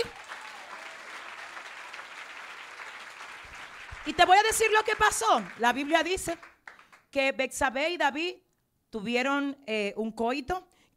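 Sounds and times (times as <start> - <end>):
audience applauding: 0.0 - 7.0
speech: 4.1 - 6.5, 7.1 - 10.7.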